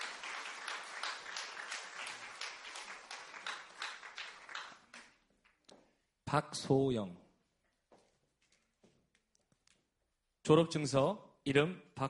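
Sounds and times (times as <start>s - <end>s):
crowd applauding for graduate: 0.0s - 5.3s
speech: 6.3s - 7.2s, 10.5s - 12.0s.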